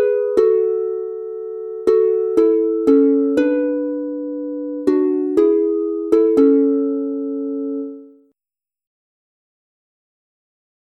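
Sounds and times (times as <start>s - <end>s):
harp in A major: 0.0s - 8.3s.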